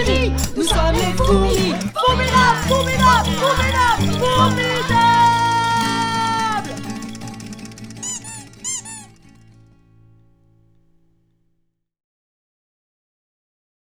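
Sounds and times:
song: 0:00.2 - 0:09.1.

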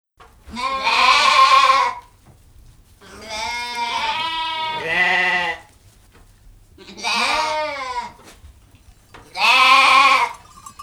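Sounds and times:
sheep bleating: 0:00.5 - 0:02.1, 0:03.0 - 0:05.7, 0:06.8 - 0:08.4, 0:09.2 - 0:10.8.

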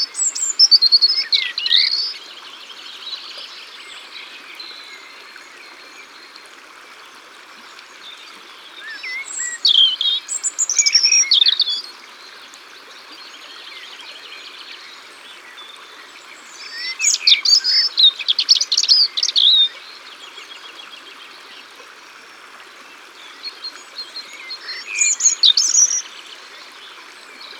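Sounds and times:
European robin singing: 0:00.0 - 0:02.3, 0:08.8 - 0:12.0, 0:16.4 - 0:19.8, 0:23.3 - 0:26.2.

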